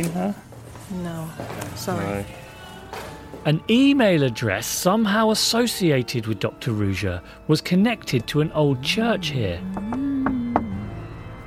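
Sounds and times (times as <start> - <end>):
speech: 0.0 - 10.4
knocks on a church door: 9.8 - 10.8.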